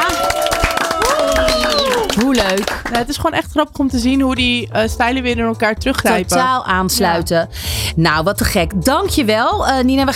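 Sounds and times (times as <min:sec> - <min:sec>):
people cheering and whooping: 0:00.0 - 0:02.3
applause: 0:00.0 - 0:03.2
speech: 0:02.2 - 0:10.1.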